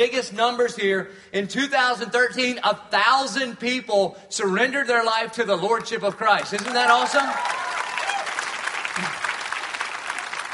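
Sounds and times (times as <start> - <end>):
speech: 0.0 - 7.8
polite golf clap from audience: 5.9 - 10.5.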